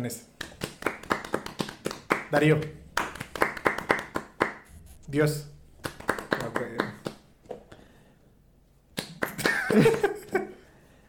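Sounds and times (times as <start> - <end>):
speech: 0.0 - 0.4, 2.3 - 2.8, 5.1 - 5.5, 9.7 - 10.1
hand clapping: 0.4 - 4.7, 5.8 - 7.8, 9.0 - 10.4
laughter: 9.4 - 10.6.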